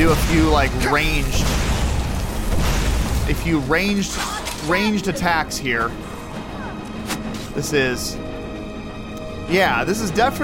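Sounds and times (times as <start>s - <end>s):
Unrelenting Force shout blast in a video game: 0.0s - 4.1s
speech: 0.1s - 1.7s, 3.3s - 6.1s, 7.6s - 8.2s, 9.5s - 10.4s.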